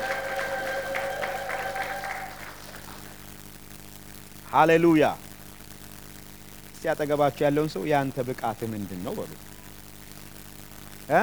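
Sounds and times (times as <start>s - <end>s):
high trilling ululation from a church congregation: 0.0s - 3.1s
church congregation applause: 0.0s - 3.4s
speech: 4.5s - 5.2s, 6.8s - 9.5s.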